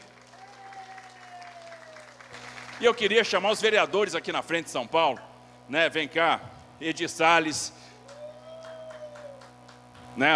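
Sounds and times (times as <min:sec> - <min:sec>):
crowd applauding: 0:00.0 - 0:03.2, 0:08.0 - 0:10.2
faint tonal hum: 0:00.0 - 0:10.3
speech: 0:02.8 - 0:07.8, 0:10.2 - 0:10.3.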